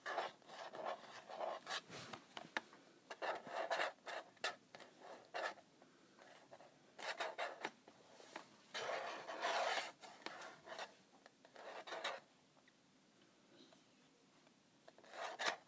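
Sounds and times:
person scratching a calculator: 0:00.0 - 0:02.4, 0:03.1 - 0:05.6, 0:06.2 - 0:12.2, 0:14.9 - 0:15.6.

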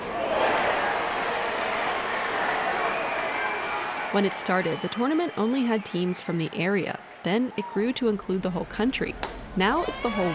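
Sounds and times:
baseball fans cheering and clapping: 0:00.0 - 0:08.2
speech: 0:04.1 - 0:10.3.

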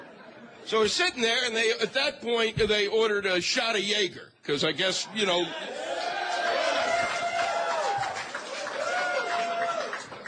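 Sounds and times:
speech: 0:00.7 - 0:05.9
audience applause: 0:05.7 - 0:10.2.

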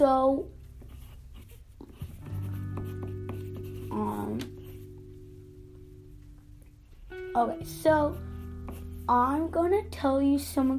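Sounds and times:
low steady hum: 0:00.0 - 0:10.7
pen writing notes on paper: 0:00.8 - 0:04.8
speech: 0:07.4 - 0:08.3, 0:09.1 - 0:10.7.

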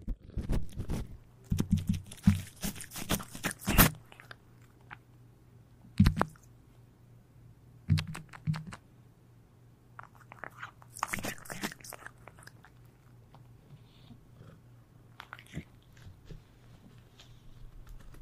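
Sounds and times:
cats eating: 0:00.1 - 0:05.0, 0:10.0 - 0:13.5, 0:15.2 - 0:16.1.

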